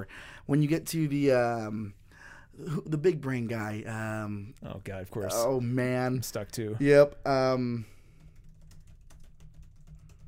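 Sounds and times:
speech: 0.0 - 2.0, 2.6 - 8.0
typing on a computer keyboard during an online search: 8.0 - 10.2.

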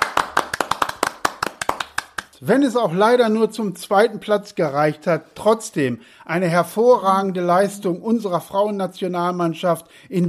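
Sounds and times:
hands clapping in applause: 0.0 - 2.4
speech: 2.4 - 10.2.

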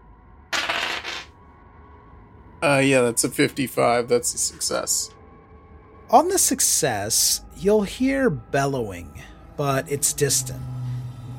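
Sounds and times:
dice clattering across a hard surface: 0.6 - 1.3
speech: 2.6 - 5.2, 6.1 - 10.8.

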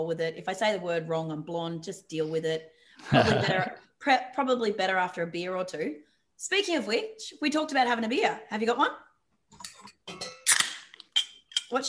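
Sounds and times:
speech: 0.0 - 10.3
laughter: 3.0 - 3.7
beer glasses clinking in a toast: 9.6 - 10.6.

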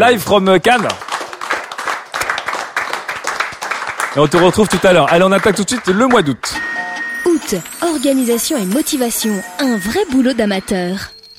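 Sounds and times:
speech: 0.0 - 1.1, 4.2 - 6.8, 7.4 - 11.3
audience applause: 0.7 - 6.6.

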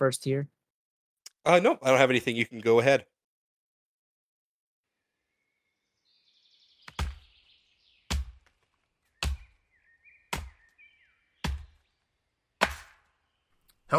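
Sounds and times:
speech: 0.0 - 0.6, 1.4 - 3.1
birds chirping: 5.0 - 13.9
axe chopping wood: 6.9 - 7.3, 8.1 - 8.6, 9.2 - 9.6, 10.3 - 10.6, 11.4 - 11.8, 12.6 - 13.1.

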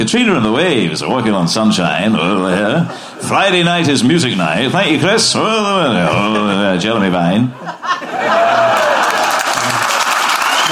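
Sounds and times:
speech: 0.0 - 8.8
laughter: 5.9 - 10.1
studio audience applause during a live radio music night: 8.2 - 10.7.

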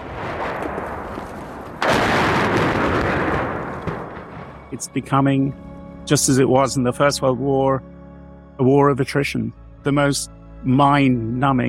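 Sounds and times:
artillery fire rumbling in a war of attrition: 0.0 - 4.8
heavy boom: 0.0 - 4.8
speech: 4.7 - 8.0, 8.6 - 11.6.

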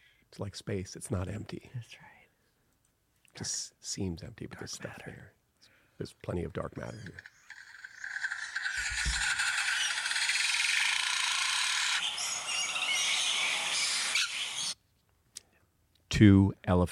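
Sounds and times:
speech: 0.3 - 2.2, 3.4 - 5.4, 6.0 - 7.3, 16.2 - 16.9
lyrebird mimicking construction noise: 6.6 - 14.8.

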